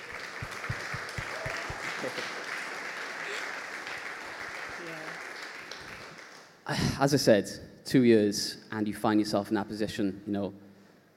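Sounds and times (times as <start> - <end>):
round of applause: 0.0 - 6.7
speech: 6.7 - 10.6.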